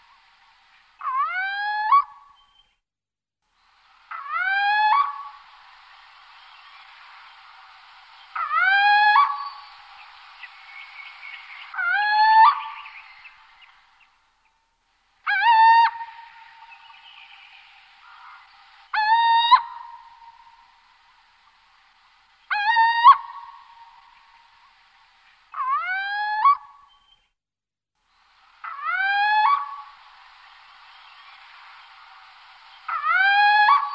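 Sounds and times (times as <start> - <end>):
little owl territorial call: 1.0 - 2.6, 8.3 - 9.8, 10.6 - 13.8, 15.2 - 20.7, 22.5 - 24.6, 25.5 - 27.2, 28.6 - 30.0, 32.8 - 33.9.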